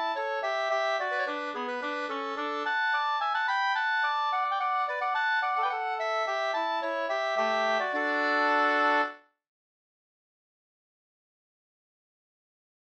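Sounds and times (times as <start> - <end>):
slangpolska folk dance tune: 0.0 - 9.2.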